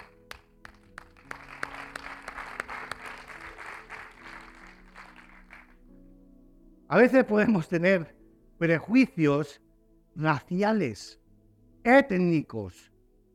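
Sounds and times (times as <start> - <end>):
audience applause: 0.0 - 5.8
speech: 6.9 - 9.6, 10.2 - 11.2, 11.8 - 12.9.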